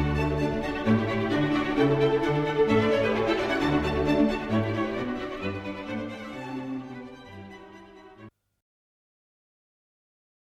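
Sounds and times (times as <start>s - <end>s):
classical music: 0.0s - 8.4s.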